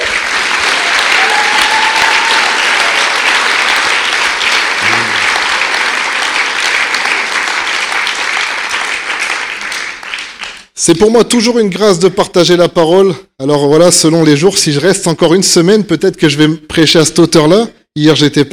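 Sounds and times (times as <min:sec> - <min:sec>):
audience applause in church: 0:00.0 - 0:10.7
speech: 0:10.8 - 0:18.5.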